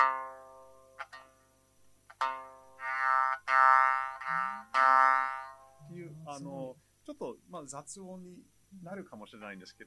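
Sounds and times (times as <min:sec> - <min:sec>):
shamisen plucked with buzzing sawari resonance: 0:00.0 - 0:06.0
speech: 0:06.4 - 0:09.8.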